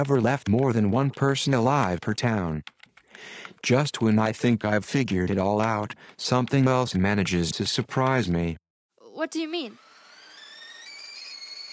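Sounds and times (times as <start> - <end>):
speech: 0.0 - 8.6, 9.2 - 9.9
whistling kettle boiling: 9.9 - 11.7.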